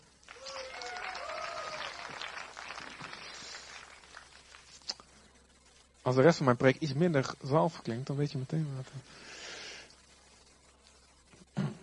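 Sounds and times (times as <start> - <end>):
audience applause: 0.2 - 4.8
scattered voices and whoops: 0.3 - 3.5
speech: 6.1 - 9.4.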